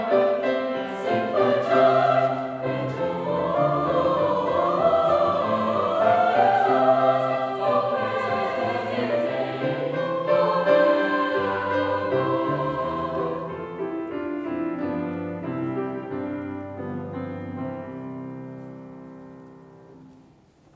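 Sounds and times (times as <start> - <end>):
concert choir singing: 0.0 - 15.6.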